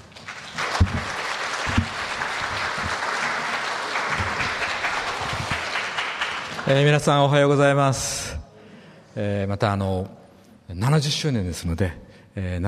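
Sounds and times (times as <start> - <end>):
audience applause welcoming a speaker: 0.0 - 7.1
speech: 6.7 - 8.4, 9.2 - 12.6.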